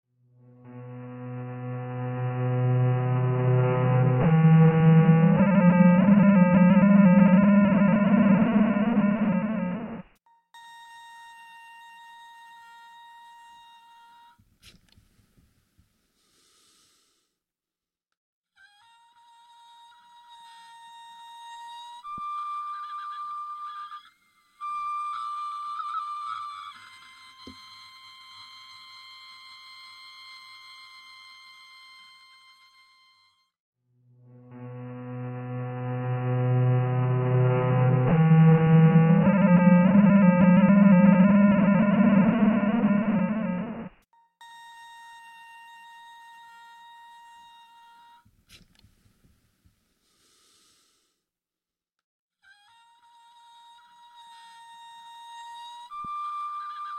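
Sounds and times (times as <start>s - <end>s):
audio feedback outdoors: 0.4s - 10.2s, 34.2s - 44.0s.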